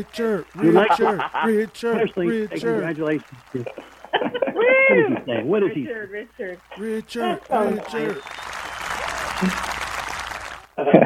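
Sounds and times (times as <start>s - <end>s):
speech: 0.0s - 8.5s, 9.4s - 9.8s, 10.8s - 11.0s
audience applause cheered from a parking lot: 0.0s - 10.8s
laughter: 0.0s - 11.0s.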